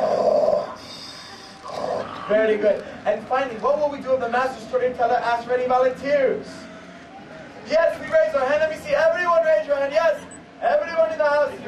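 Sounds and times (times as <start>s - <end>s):
audience imitating snoring: 0.0s - 2.6s
speech: 2.3s - 6.7s, 7.7s - 11.6s.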